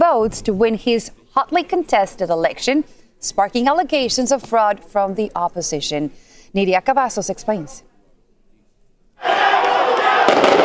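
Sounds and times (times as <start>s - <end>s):
speech: 0.2s - 7.9s
protesters shouting: 9.2s - 10.6s
rubber bullets and tear gas canisters exploding as police fire on protesters: 10.1s - 10.6s
sharp bangs: 10.2s - 10.6s.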